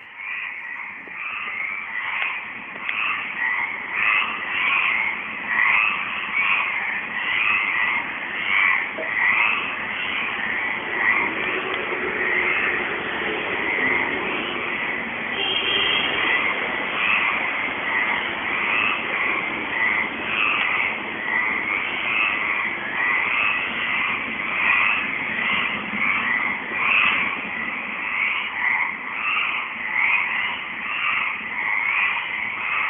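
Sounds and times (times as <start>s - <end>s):
frogs croaking at dusk in a park near Palais Longchamp: 0.0s - 32.8s.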